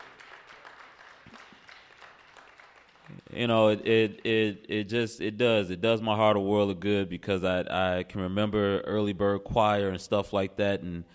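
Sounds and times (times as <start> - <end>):
audience applause: 0.0 - 4.7
speech: 3.4 - 11.1.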